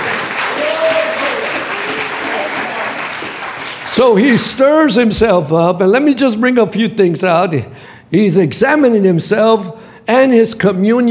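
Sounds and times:
audience clapping: 0.0 - 4.5
speech: 4.0 - 11.0.

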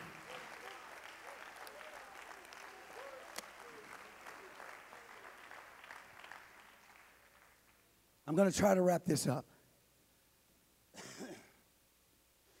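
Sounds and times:
audience clapping hands: 0.0 - 8.0
speech: 8.3 - 9.5.

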